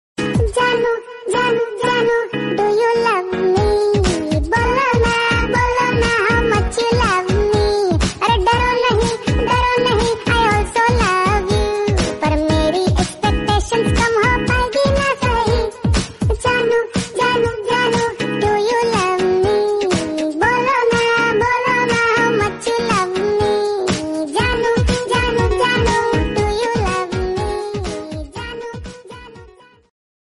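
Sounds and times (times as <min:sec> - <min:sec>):
funny Hindi song: 0:00.2 - 0:29.9.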